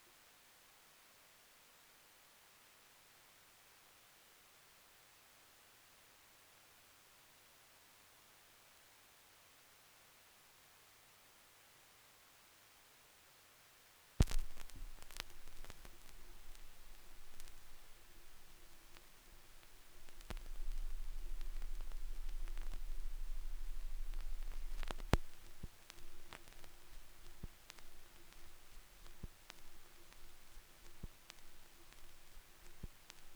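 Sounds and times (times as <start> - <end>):
vinyl record noise: 14.2 - 33.3.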